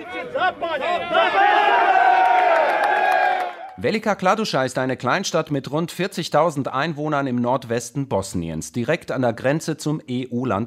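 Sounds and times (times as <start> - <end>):
speech: 0.1 - 1.5, 3.8 - 10.6
crowd applauding: 0.4 - 3.8.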